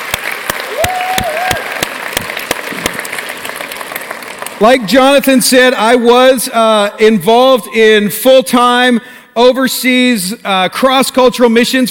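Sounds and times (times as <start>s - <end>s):
audience round of applause: 0.0s - 5.0s
speech: 4.6s - 11.8s.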